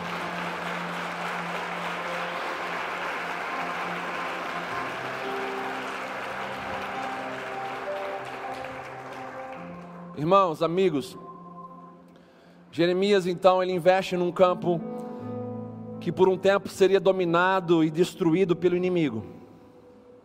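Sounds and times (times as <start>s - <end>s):
audience applause: 0.0s - 10.2s
faint sustained musical tones: 0.0s - 12.8s
speech: 10.2s - 11.2s, 12.8s - 14.9s, 16.1s - 19.4s.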